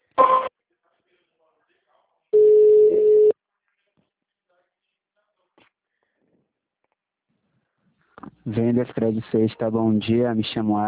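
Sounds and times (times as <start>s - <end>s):
telephone ringback tone while a call is transferred to a sales agent: 0.2s - 0.5s, 2.4s - 3.3s
speech: 8.5s - 10.8s.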